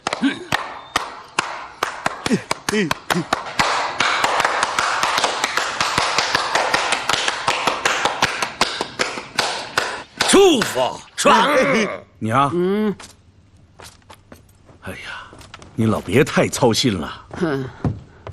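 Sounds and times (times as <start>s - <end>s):
hand clapping: 0.0s - 10.9s
speech: 0.2s - 0.5s, 2.3s - 3.4s, 10.5s - 13.1s, 14.8s - 15.2s, 15.8s - 17.8s.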